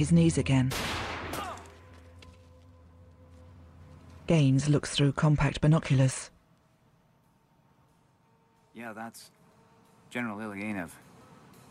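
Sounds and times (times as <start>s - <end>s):
speech: 0.0s - 1.1s, 4.3s - 6.4s, 8.8s - 9.4s, 10.1s - 11.1s
sniper's gunshot fired into the ground: 0.7s - 1.7s.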